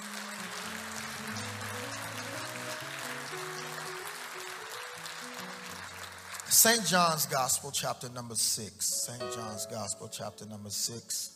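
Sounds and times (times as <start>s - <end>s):
keyboard or organ chords: 0.0s - 7.5s, 8.9s - 11.0s
audience clapping hands in praise: 0.0s - 7.9s
speech: 6.6s - 11.3s.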